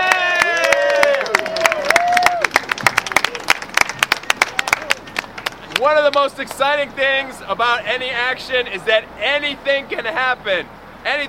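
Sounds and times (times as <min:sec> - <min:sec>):
crowd cheering at a workers' rally over wage theft: 0:00.0 - 0:05.1
crowd applause at a workers' rally over wage theft: 0:00.0 - 0:05.9
speech: 0:05.8 - 0:11.2.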